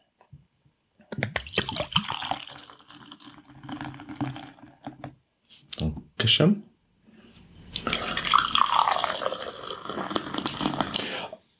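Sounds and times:
beer pouring into a glass: 1.4s - 5.0s, 7.7s - 11.3s
speech: 6.3s - 6.7s.

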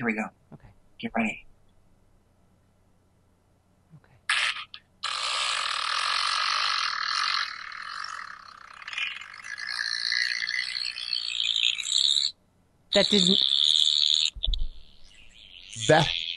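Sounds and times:
speech: 0.0s - 0.4s, 1.0s - 1.5s, 13.0s - 13.6s, 15.8s - 16.2s
long squeaky fart: 4.3s - 12.3s, 13.3s - 16.3s.

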